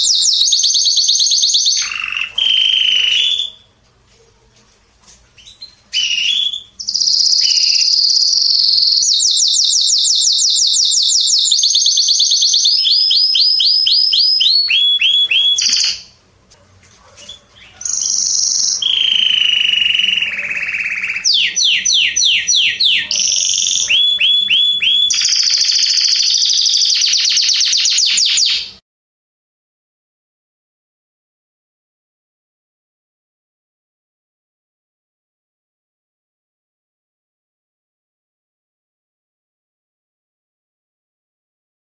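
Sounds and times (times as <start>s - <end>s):
Canary song: 0.0s - 28.8s.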